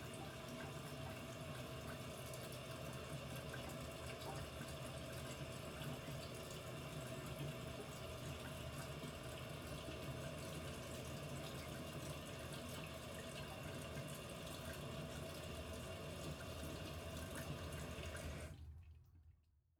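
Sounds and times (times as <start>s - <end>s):
household toilet flushing: 0.0s - 18.8s.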